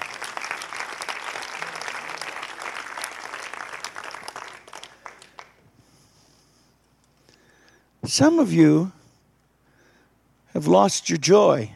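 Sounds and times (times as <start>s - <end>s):
audience hand clapping: 0.0s - 5.6s
speech: 8.1s - 9.0s, 10.6s - 11.7s.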